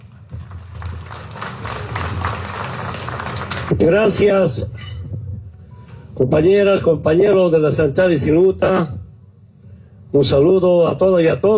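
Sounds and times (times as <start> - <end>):
crowd applause: 0.0 - 3.8
speech: 3.7 - 4.8, 6.2 - 9.0, 10.1 - 11.5.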